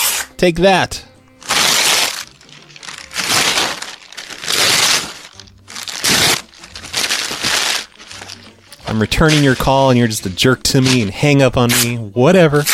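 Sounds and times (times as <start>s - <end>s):
paper loan application being ripped into tiny pieces: 0.0s - 0.3s, 1.4s - 12.0s, 12.6s - 12.7s
speech: 0.4s - 1.1s, 8.9s - 12.7s.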